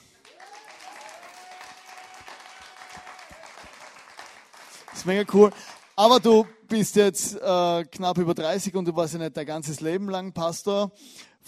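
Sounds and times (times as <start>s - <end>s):
audience applause: 0.0s - 7.0s
speech: 5.0s - 11.4s.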